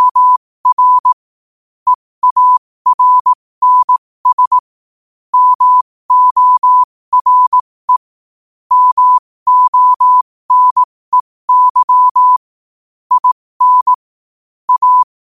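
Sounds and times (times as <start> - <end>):
morse code at 5 wpm: 0.0 - 1.2, 1.9 - 4.6, 5.3 - 8.1, 8.7 - 12.4, 13.1 - 14.0, 14.7 - 15.1.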